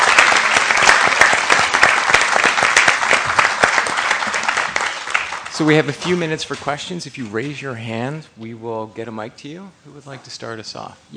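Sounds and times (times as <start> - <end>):
audience applause: 0.0 - 5.9
speech: 5.6 - 11.1.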